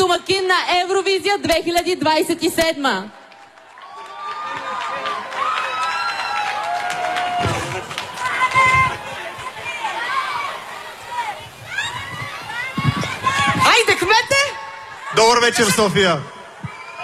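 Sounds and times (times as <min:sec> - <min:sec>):
speech: 0:00.2 - 0:03.2, 0:13.8 - 0:14.5, 0:15.1 - 0:16.3
large crowd applauding: 0:03.3 - 0:13.7
voices shouting and whooping: 0:03.8 - 0:17.0.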